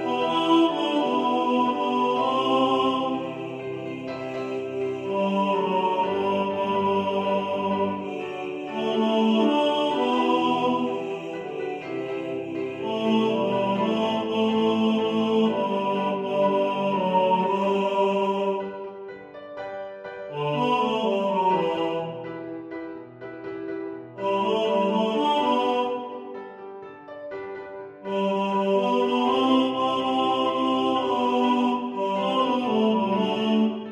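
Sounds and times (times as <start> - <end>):
tenor singing in the foreground: 0.0 - 19.1, 20.3 - 22.6, 24.2 - 26.3, 28.1 - 33.9
piano: 0.0 - 33.9.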